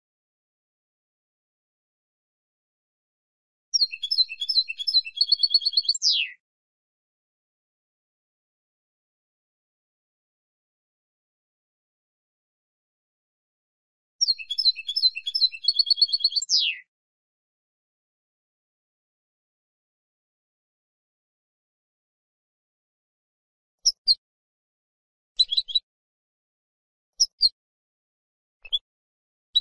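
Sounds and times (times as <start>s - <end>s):
European goldfinch song: 3.8s - 6.4s, 14.2s - 16.9s.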